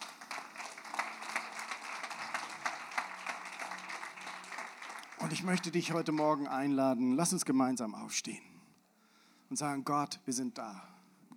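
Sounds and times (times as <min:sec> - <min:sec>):
audience applause: 0:00.0 - 0:06.5
speech: 0:05.2 - 0:08.5, 0:09.5 - 0:11.0.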